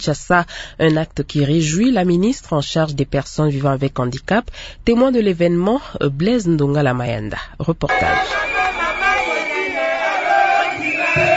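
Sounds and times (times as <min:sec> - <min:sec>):
speech: 0:00.0 - 0:08.6
large crowd cheering and singing joyfully: 0:07.9 - 0:11.3.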